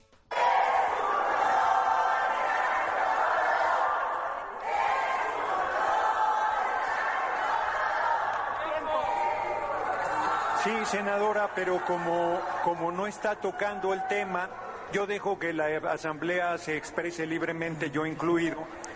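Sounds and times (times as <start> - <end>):
legislators chanting in unison from the ruling party benches: 0.3 - 15.0
speech: 10.7 - 18.8.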